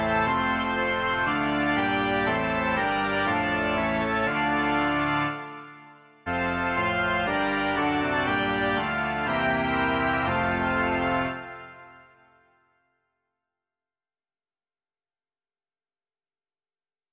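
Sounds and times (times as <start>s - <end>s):
pipe organ: 0.0s - 12.3s.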